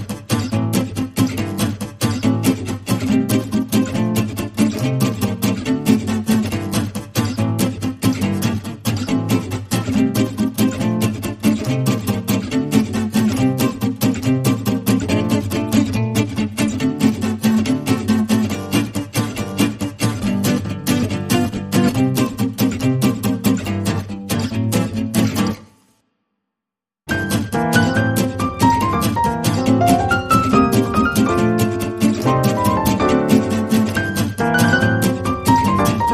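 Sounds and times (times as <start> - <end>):
guitars: 0.0 - 25.9, 27.1 - 36.1
piano: 27.1 - 36.1.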